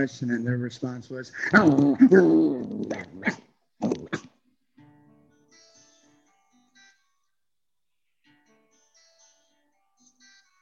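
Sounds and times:
speech: 0.0s - 4.0s
person imitating a barking dog: 1.4s - 4.4s.

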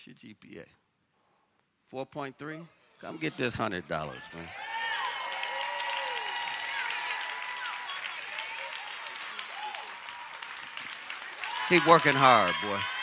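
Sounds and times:
speech: 0.0s - 0.9s, 1.9s - 4.7s, 11.7s - 12.9s
audience applause: 4.4s - 13.0s.

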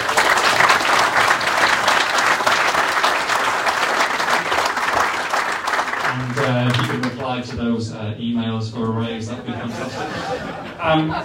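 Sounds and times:
live audience applause: 0.0s - 7.4s
speech: 7.4s - 11.2s
laughter: 9.2s - 11.2s.

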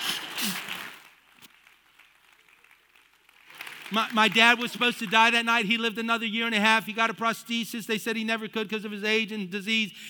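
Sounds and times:
audience applause: 0.0s - 5.3s
speech: 3.9s - 10.0s.

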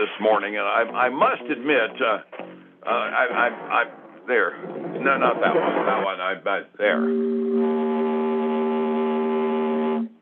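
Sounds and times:
speech: 0.0s - 8.0s
joke alarm sound effect, foghorn-like: 6.9s - 10.2s.

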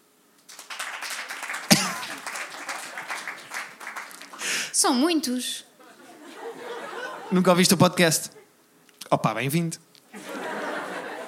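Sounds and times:
audience applause: 0.5s - 4.7s
laughter: 0.9s - 4.5s, 5.8s - 7.7s, 10.1s - 11.2s
speech: 4.8s - 5.7s, 7.3s - 8.4s, 9.1s - 9.9s.

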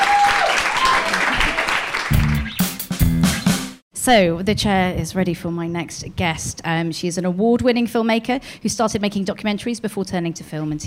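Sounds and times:
audience applause: 0.0s - 2.7s
speech: 4.0s - 10.8s.

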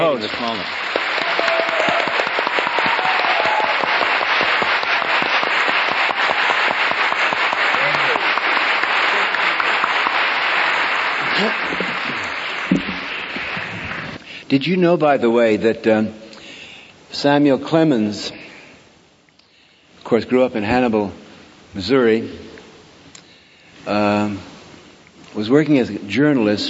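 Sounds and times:
speech: 0.0s - 1.0s, 11.4s - 11.8s, 14.5s - 16.2s, 17.2s - 18.4s, 20.1s - 22.5s, 25.4s - 26.6s
audience applause: 0.0s - 14.2s.

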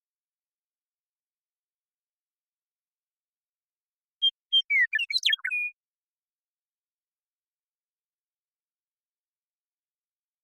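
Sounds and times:
western meadowlark whistled song: 4.2s - 5.8s.

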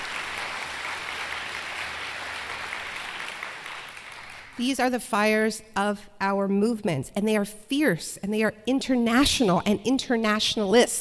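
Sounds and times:
audience applause: 0.0s - 4.6s
speech: 4.6s - 10.9s.

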